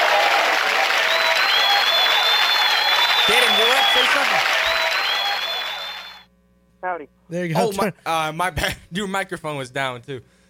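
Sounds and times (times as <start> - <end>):
round of applause: 0.0 - 6.2
speech: 6.9 - 10.4.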